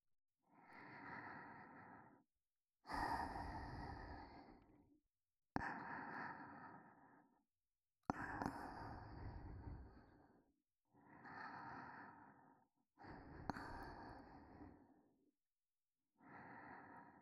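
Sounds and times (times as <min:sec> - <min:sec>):
person breathing softly for sleep: 0:00.5 - 0:02.2, 0:02.8 - 0:04.9, 0:05.6 - 0:07.4, 0:08.1 - 0:10.4, 0:11.0 - 0:15.1, 0:16.2 - 0:17.2.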